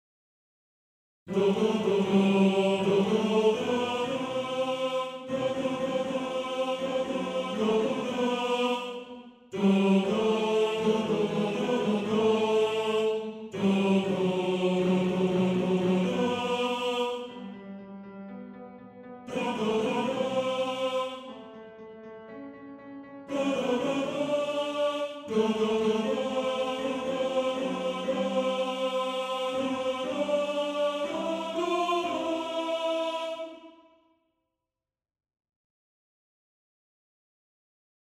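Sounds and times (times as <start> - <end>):
tenor singing: 1.3 - 17.5, 19.3 - 21.6, 23.3 - 33.6.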